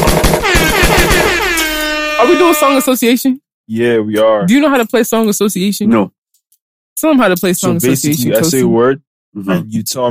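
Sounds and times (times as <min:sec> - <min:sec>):
rapid gunshot sound effect: 0:00.0 - 0:01.6
speech: 0:02.3 - 0:06.2, 0:07.0 - 0:10.0.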